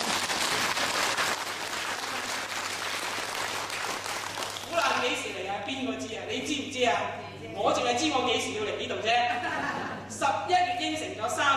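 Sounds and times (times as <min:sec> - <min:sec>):
audience applause: 0:00.0 - 0:04.8
speech: 0:05.1 - 0:11.5
laughter: 0:09.3 - 0:10.2.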